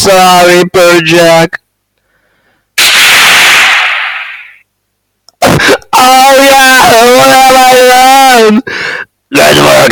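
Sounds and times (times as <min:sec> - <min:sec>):
speech: 0:00.0 - 0:01.6, 0:06.0 - 0:09.9
gunshot: 0:02.8 - 0:04.6.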